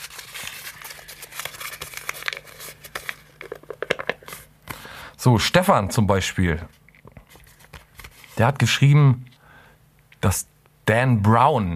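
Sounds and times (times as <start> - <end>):
paper note rustling as it is pulled out: 0.0 - 4.5, 7.0 - 8.5
speech: 5.2 - 6.8, 8.4 - 9.3, 10.2 - 11.7.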